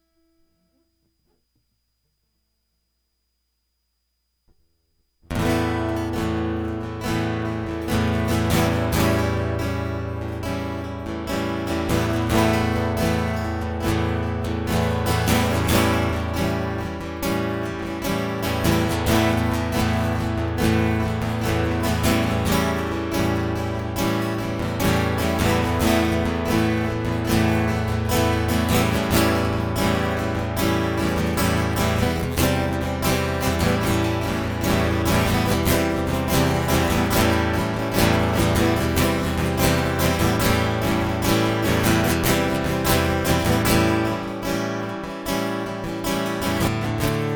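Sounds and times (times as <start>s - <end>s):
guitar loop: 5.3s - 47.3s.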